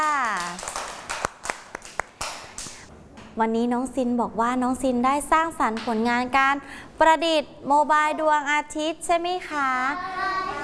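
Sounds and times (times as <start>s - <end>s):
children clapping: 0.0s - 2.9s
speech: 3.4s - 10.6s.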